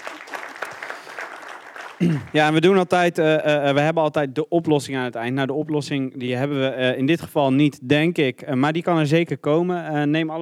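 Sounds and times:
audience applause: 0.0 - 2.6
speech: 2.0 - 10.4.

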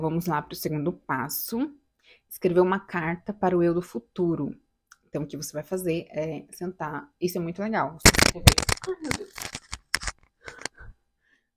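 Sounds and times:
speech: 0.0 - 9.6
microphone falling: 8.0 - 10.7.

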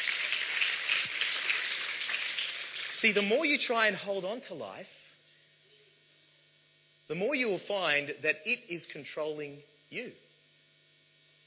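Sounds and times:
applause: 0.0 - 3.5
speech: 3.0 - 5.0, 7.1 - 10.3.

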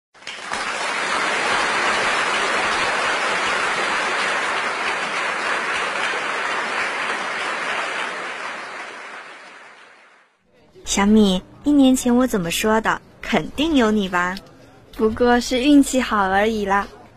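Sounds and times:
group applause: 0.2 - 10.4
speech: 10.9 - 17.0.

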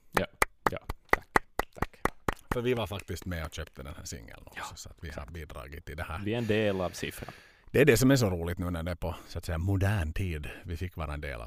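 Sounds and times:
people clapping: 0.1 - 4.0
speech: 2.6 - 11.4.

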